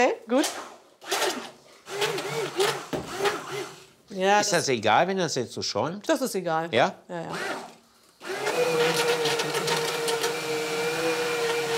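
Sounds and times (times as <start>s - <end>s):
speech: 0.0s - 0.6s, 4.4s - 7.6s
small kitchen blender running: 1.0s - 3.9s, 7.3s - 11.7s.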